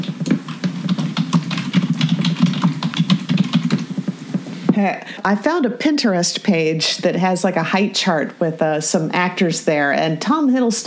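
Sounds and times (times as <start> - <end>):
rapid computer keyboard typing: 0.0 - 4.6
speech: 4.8 - 10.8.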